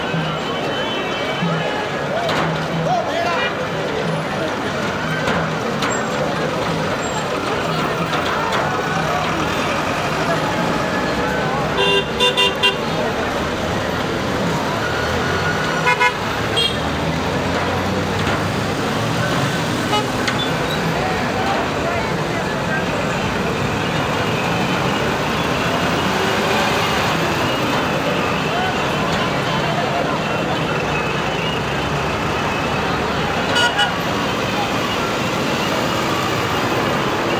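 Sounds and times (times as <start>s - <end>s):
street traffic in Kathmandu Nepal: 0.0s - 37.3s.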